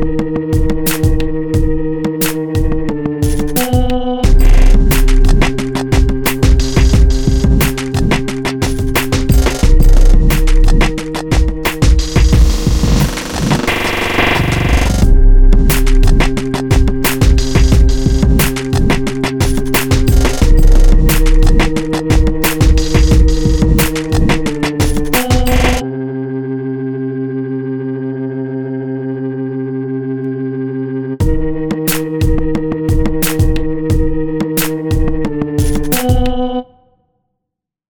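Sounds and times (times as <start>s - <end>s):
sci drama loading beat: 0.0s - 25.8s, 31.2s - 36.4s.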